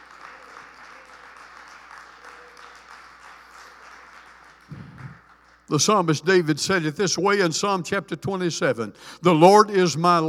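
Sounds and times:
audience hand clapping: 0.0s - 6.1s
speech: 5.7s - 10.2s.

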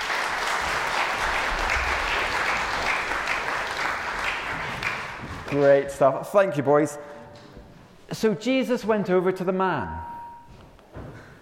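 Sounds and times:
crowd clapping: 0.0s - 6.1s
speech: 5.5s - 7.1s, 8.1s - 10.1s.

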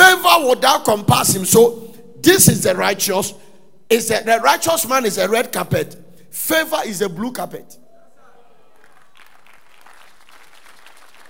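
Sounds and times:
speech: 0.4s - 7.8s
audience clapping: 8.7s - 11.2s.

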